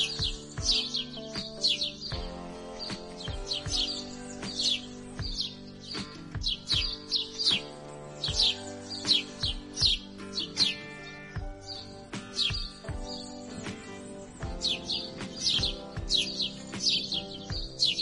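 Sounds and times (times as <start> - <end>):
grey-headed sparrow chirping: 0.0 - 18.0.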